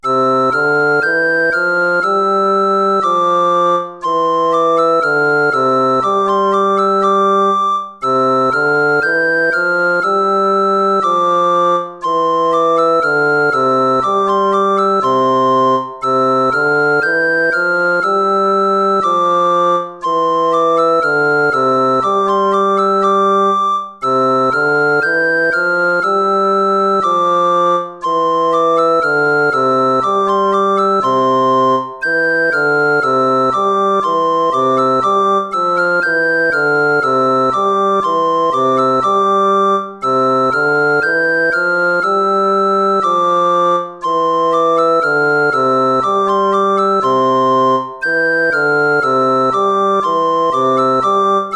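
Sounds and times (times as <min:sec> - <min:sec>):
gavotte music: 0:00.0 - 0:51.5.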